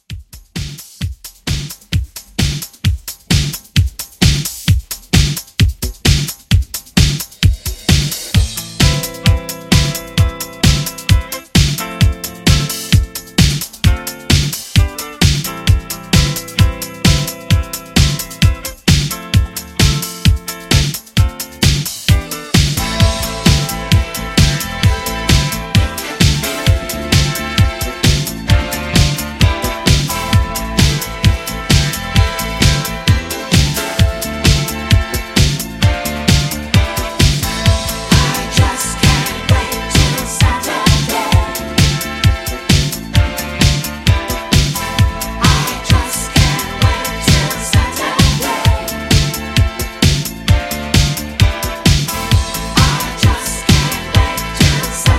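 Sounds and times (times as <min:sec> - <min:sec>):
70s drum machine beat: 0:00.0 - 0:55.1.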